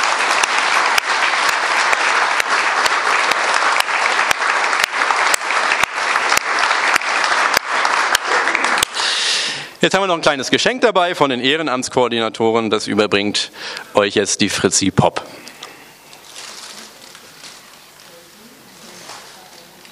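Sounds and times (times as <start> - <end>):
applause: 0.0 - 9.4
speech: 9.8 - 15.4.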